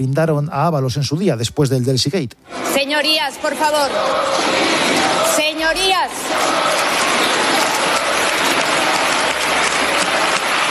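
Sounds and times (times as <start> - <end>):
speech: 0.0 - 7.4
crowd applause in a parliamentary chamber: 3.4 - 10.7.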